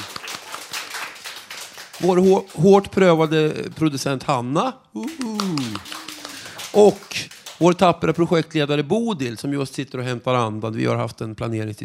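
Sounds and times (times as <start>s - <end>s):
audience applause: 0.0s - 3.2s, 5.0s - 7.8s
speech: 2.0s - 6.0s, 6.8s - 11.8s.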